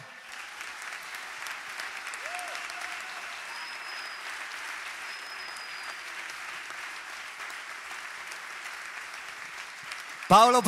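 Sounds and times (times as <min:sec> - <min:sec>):
theatre audience applause: 0:00.0 - 0:10.6
faint whistles: 0:03.5 - 0:04.4, 0:05.0 - 0:06.0
speech: 0:10.3 - 0:10.6.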